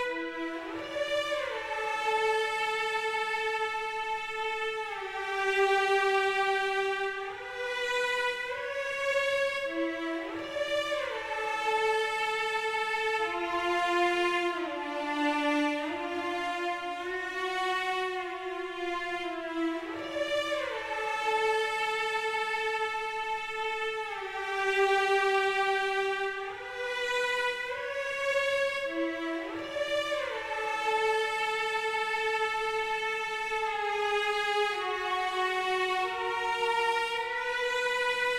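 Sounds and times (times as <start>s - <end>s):
cello: 0.0s - 38.3s.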